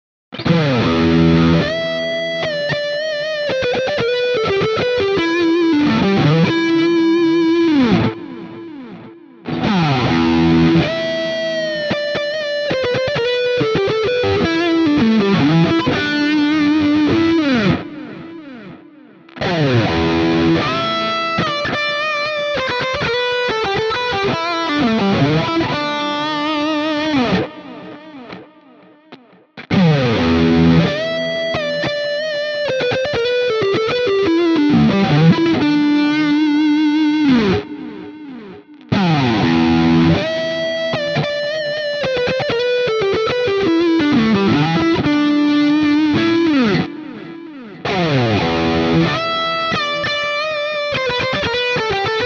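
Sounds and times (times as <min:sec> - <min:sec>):
Hagstroem lead guitar in all positions: 0:00.3 - 0:52.2.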